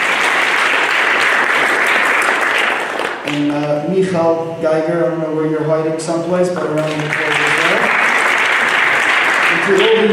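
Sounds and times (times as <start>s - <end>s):
round of applause: 0.0s - 3.7s, 6.6s - 10.1s
speech: 3.3s - 7.6s, 9.6s - 10.1s.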